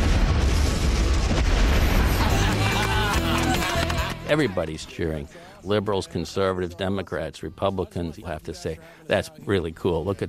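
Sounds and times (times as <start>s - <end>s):
roar and rumble of debris and fire: 0.0s - 3.2s
garbage truck blowing up: 0.0s - 4.0s
laughter: 1.8s - 5.6s
speech: 4.3s - 10.2s.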